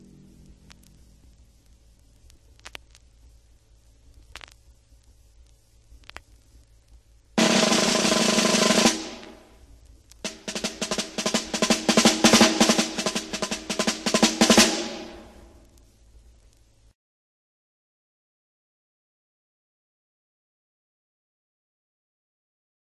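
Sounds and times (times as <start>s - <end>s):
timpani playing various percussion effects: 7.4s - 9.5s, 10.2s - 15.7s.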